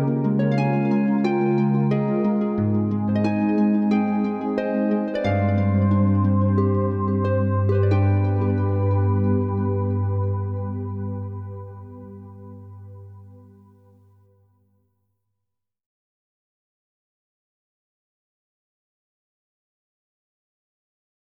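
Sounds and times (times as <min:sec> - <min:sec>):
harp reverberating: 0:00.0 - 0:13.4.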